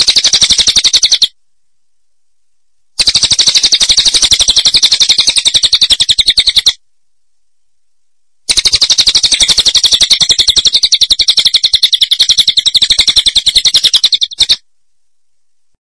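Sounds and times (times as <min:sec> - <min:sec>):
bird song fast trill of sharp high notes: 0:00.0 - 0:01.3, 0:03.0 - 0:06.8, 0:08.5 - 0:14.6.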